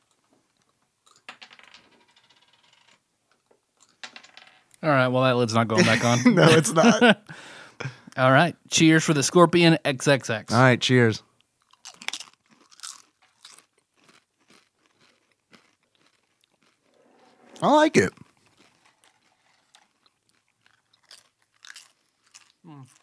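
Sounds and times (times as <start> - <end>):
speech: 4.8 - 7.2, 8.2 - 11.3, 17.6 - 18.2
laughter: 5.7 - 7.3
crunching tortilla chips: 11.6 - 17.0, 18.3 - 23.0.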